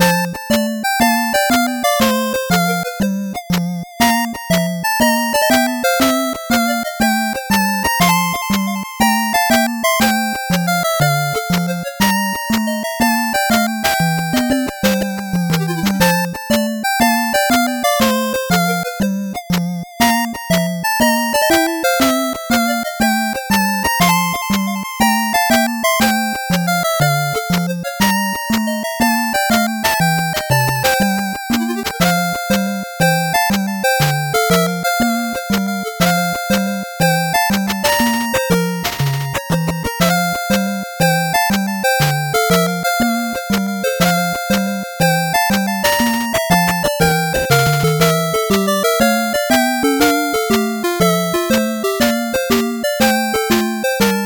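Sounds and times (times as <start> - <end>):
slow 8-bit background music: 0.0 - 54.2.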